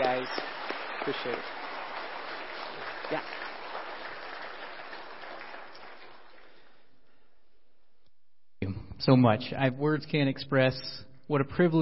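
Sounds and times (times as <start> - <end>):
audience applause: 0.0 - 6.9
speech: 1.0 - 1.6, 3.1 - 3.4, 9.0 - 11.8.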